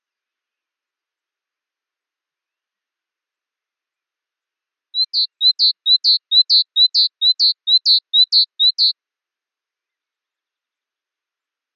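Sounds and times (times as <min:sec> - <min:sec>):
great tit call: 0:05.0 - 0:08.9
speech: 0:05.2 - 0:09.1.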